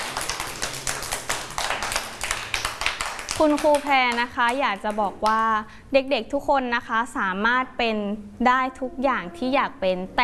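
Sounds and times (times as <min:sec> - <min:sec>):
hands clapping: 0:00.0 - 0:05.5
speech: 0:03.4 - 0:10.2.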